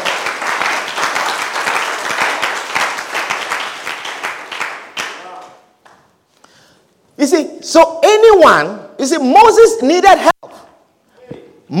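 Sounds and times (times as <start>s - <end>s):
crowd clapping: 0.0s - 6.1s
speech: 7.2s - 10.3s.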